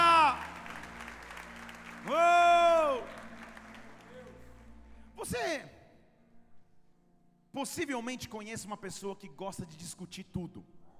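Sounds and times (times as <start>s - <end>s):
audience applauding: 0.0s - 4.7s
speech: 7.6s - 10.8s.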